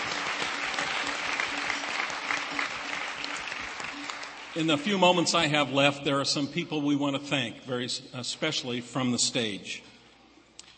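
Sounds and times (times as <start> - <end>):
audience applause: 0.0 - 5.5
speech: 4.6 - 9.9.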